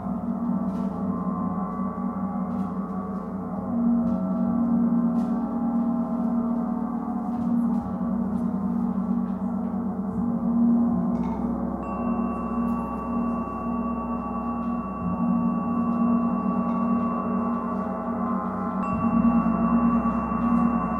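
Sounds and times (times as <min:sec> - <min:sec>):
gong humming in a gong meditation: 0:00.0 - 0:20.9
pure high ringing tone: 0:11.8 - 0:20.9.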